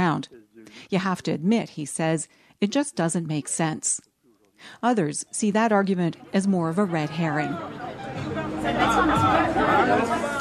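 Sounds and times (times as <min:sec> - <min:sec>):
speech: 0:00.1 - 0:10.3
after-work crowd of IT developers and marketing workers chatting and laughing on a heated terrace: 0:05.6 - 0:10.4.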